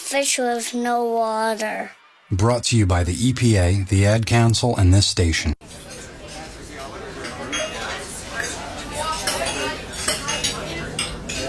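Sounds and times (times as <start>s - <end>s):
speech: 0.1s - 5.6s
dishes and cutlery clinking after a dinner party: 5.6s - 11.4s
low murmur of indistinct voices: 5.6s - 11.4s.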